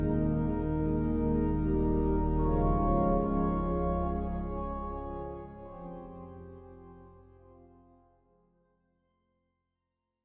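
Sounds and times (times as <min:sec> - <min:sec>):
organ playing a Credo: 0:00.0 - 0:07.9.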